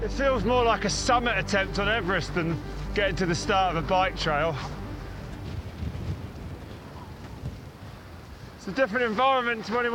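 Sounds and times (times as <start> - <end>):
speech: 0.0 - 4.8, 8.7 - 9.9
strong wind at high altitude near a volcanic crater: 0.0 - 9.9.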